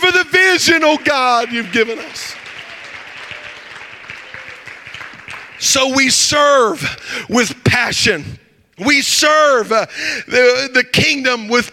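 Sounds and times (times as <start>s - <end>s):
audience clapping hands: 0.0s - 6.7s
speech: 0.6s - 2.4s, 5.6s - 11.7s.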